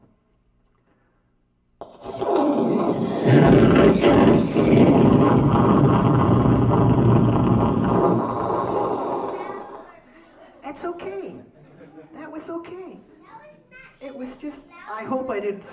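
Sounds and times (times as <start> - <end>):
thunderstorm: 2.1 - 9.4
speech: 14.2 - 15.7.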